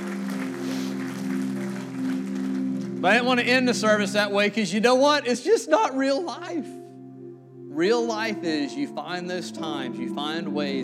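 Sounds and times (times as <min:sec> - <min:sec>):
church congregation clapping at the end of a service: 0:00.0 - 0:04.5
speech: 0:03.0 - 0:06.8, 0:07.8 - 0:10.8.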